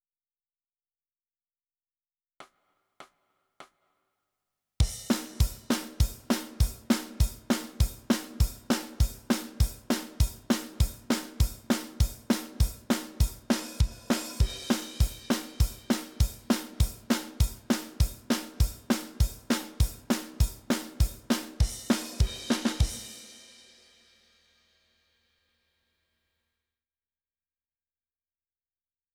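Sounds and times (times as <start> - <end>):
drums: 4.8 - 24.7.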